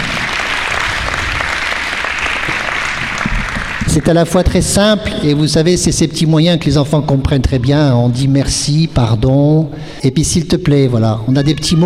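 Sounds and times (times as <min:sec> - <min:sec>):
crowd applauding: 0:00.0 - 0:04.2
speech: 0:04.0 - 0:11.8.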